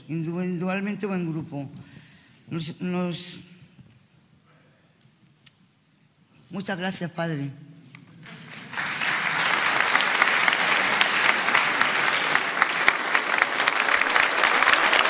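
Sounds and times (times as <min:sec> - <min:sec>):
speech: 0:00.1 - 0:01.9, 0:02.5 - 0:03.5, 0:06.5 - 0:07.6
applause from prisoners and volunteers: 0:08.2 - 0:15.0.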